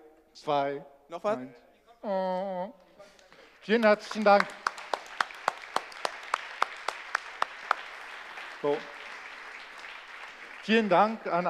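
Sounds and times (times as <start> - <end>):
speech: 0.4 - 4.6, 8.6 - 9.0, 10.6 - 11.4
audience applause: 3.4 - 11.4.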